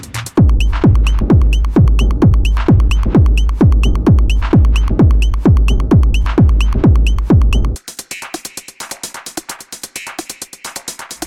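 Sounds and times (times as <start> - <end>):
atmospheric techno music: 0.4 - 7.8.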